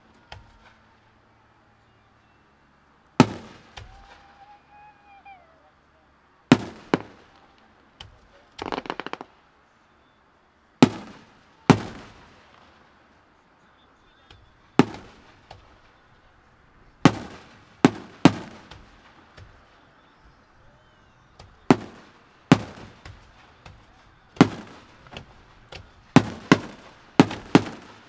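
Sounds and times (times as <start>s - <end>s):
fireworks: 3.2s - 5.4s, 6.5s - 9.5s, 10.8s - 13.1s, 14.3s - 16.0s, 16.7s - 28.0s.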